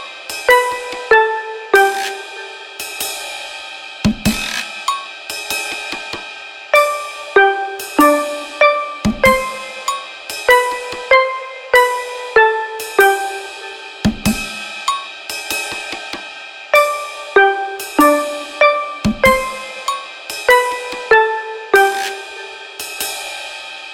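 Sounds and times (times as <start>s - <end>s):
acoustic music: 0.5s - 2.8s, 6.8s - 14.1s, 16.8s - 22.8s.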